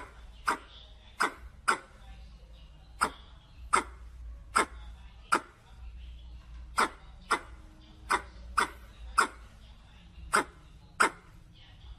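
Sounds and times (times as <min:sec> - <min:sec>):
red squirrel chuck calls: 0:00.0 - 0:01.9, 0:03.0 - 0:04.0, 0:06.8 - 0:09.5, 0:10.3 - 0:11.3.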